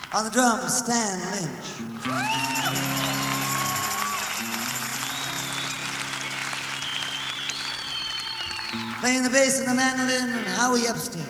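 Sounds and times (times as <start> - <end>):
speech: 0.1 - 3.4, 9.0 - 11.2
scattered whoops and cheers: 2.0 - 9.0
crowd applause for introduced musician: 2.0 - 10.6.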